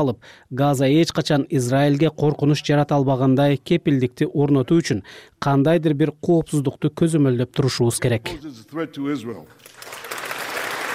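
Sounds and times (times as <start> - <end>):
speech: 0.0 - 10.1
US lawmakers clapping for a speech by Netanyahu: 9.5 - 10.9.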